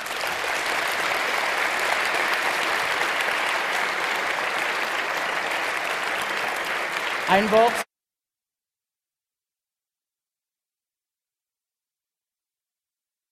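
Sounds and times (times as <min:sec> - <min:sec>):
audience applause: 0:00.0 - 0:07.9
speech: 0:07.3 - 0:07.8.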